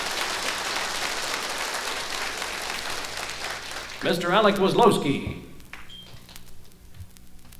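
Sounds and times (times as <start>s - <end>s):
audience applause in Winnipeg greeting a cimbalom player: 0.0s - 4.4s
speech: 4.0s - 5.5s.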